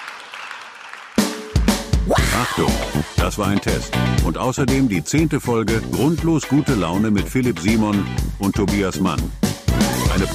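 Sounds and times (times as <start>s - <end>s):
applause: 0.0s - 1.8s
speech: 2.4s - 9.5s, 10.2s - 10.3s.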